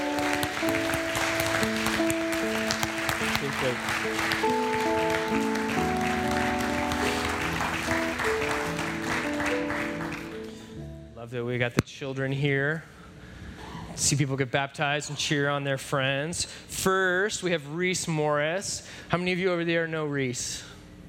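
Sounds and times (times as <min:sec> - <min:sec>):
crowd applauding: 0:00.0 - 0:10.6
sustained musical tones: 0:00.0 - 0:11.3
speech: 0:11.7 - 0:13.0, 0:14.0 - 0:20.7.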